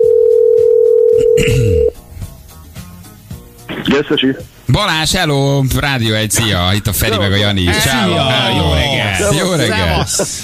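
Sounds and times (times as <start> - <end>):
telephone ringing tone like an international call: 0.0 - 1.9
speech: 4.0 - 10.4
laughter: 7.7 - 10.4.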